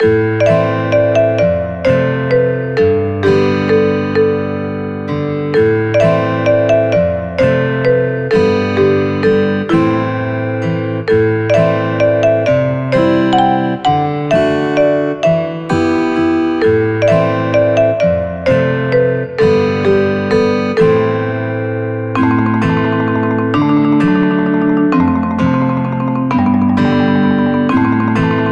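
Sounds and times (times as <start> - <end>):
130 bpm music loop: 0.0 - 28.5.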